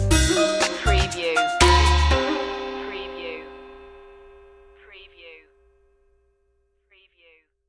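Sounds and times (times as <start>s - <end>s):
musical stinger: 0.1s - 4.8s.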